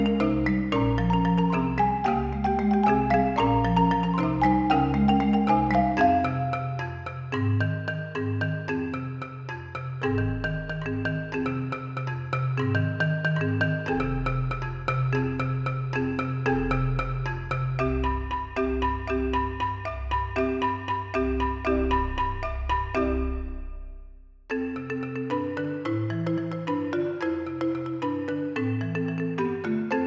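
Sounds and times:
six marimbas playing: 0.0 - 30.0.

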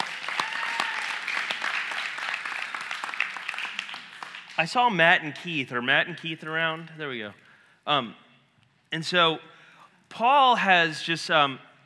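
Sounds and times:
church congregation applauding: 0.0 - 4.8
speech: 4.6 - 8.2, 8.9 - 9.5, 10.1 - 11.7.

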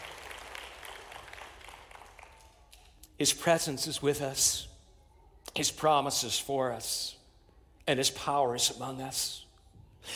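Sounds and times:
audience clapping: 0.0 - 3.0
speech: 3.2 - 4.7, 5.6 - 7.2, 7.9 - 9.4.

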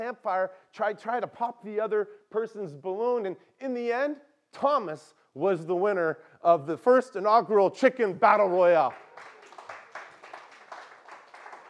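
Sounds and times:
speech: 0.0 - 9.3
youth from camp clapping: 8.6 - 11.6.

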